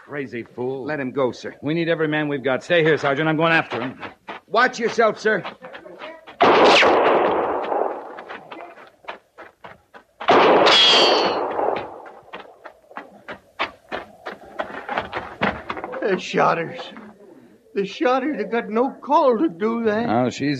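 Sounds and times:
speech: 0.1s - 5.7s, 16.1s - 17.0s, 17.8s - 20.5s
gunshots: 6.4s - 8.6s, 10.3s - 12.3s.

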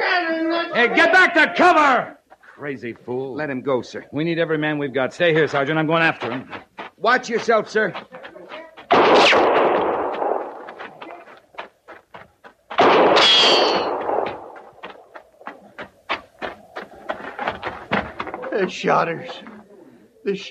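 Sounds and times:
speech: 0.8s - 8.3s, 18.6s - 19.5s, 20.2s - 20.4s
booming gunshots: 8.9s - 10.8s, 12.8s - 14.8s
volley of gunfire cracks: 8.9s - 10.9s, 12.8s - 14.8s.

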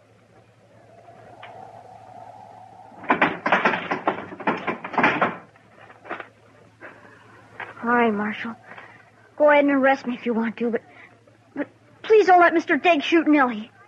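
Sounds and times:
barn door being opened: 3.0s - 5.5s
speech: 8.1s - 8.6s, 9.4s - 10.9s, 11.6s - 13.7s.

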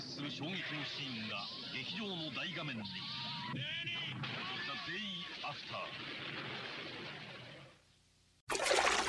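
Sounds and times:
speech: 0.2s - 7.4s
water splashing: 8.5s - 9.0s
water trickling in a bathtub: 8.5s - 9.0s.

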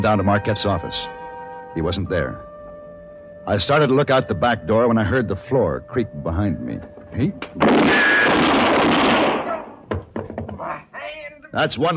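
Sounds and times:
speech: 0.0s - 1.2s, 1.8s - 2.5s, 3.4s - 9.0s, 11.6s - 11.9s
gunshot: 7.5s - 9.8s.

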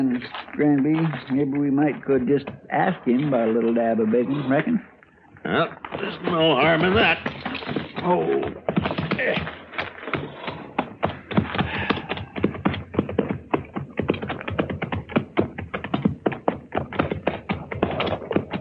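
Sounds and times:
horses' hooves clip-clopping: 0.0s - 5.2s, 5.8s - 18.5s
speech: 0.0s - 8.6s.

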